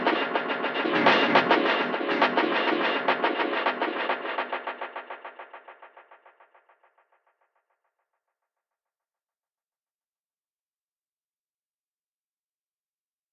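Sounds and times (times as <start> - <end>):
lo-fi funk music: 0.0 - 6.3.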